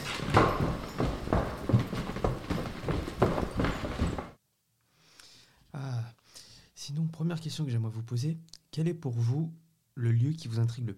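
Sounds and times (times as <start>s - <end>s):
footsteps of people running: 0.0s - 4.4s
speech: 7.2s - 10.9s.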